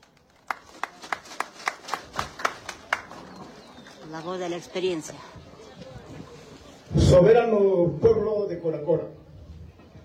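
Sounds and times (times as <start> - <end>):
audience clapping: 0.0 - 5.0
speech: 4.1 - 5.4, 7.1 - 9.2.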